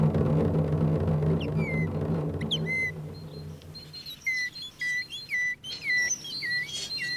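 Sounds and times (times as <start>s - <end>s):
low rumbling hum: 0.0s - 4.5s
person whistling an imitation of a tit's call: 1.4s - 7.1s.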